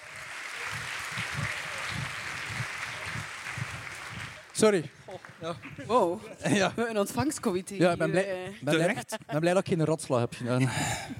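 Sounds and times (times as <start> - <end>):
audience applause: 0.0 - 5.8
speech: 4.6 - 11.1.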